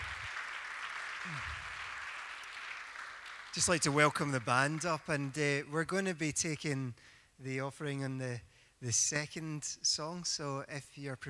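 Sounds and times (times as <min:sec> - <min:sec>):
church congregation clapping during opening worship: 0:00.0 - 0:05.6
speech: 0:01.2 - 0:01.6, 0:03.6 - 0:11.2.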